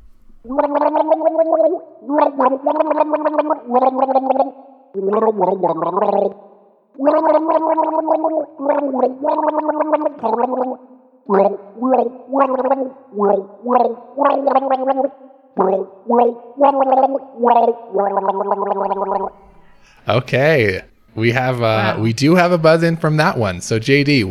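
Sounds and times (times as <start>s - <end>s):
speech: 0.4s - 24.2s
person gargling a rock melody: 0.5s - 19.3s.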